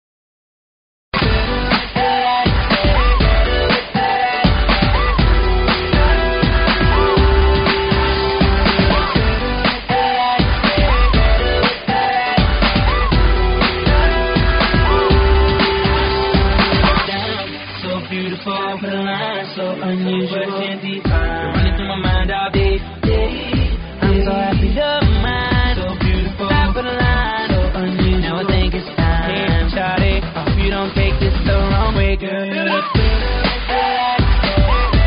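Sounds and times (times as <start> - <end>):
funk music: 1.2 - 35.0.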